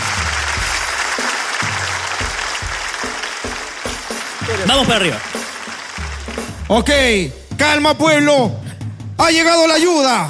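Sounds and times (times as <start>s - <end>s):
audience applause for a storyteller: 0.0s - 7.4s
speech: 4.6s - 5.4s, 6.7s - 8.6s, 9.2s - 10.2s.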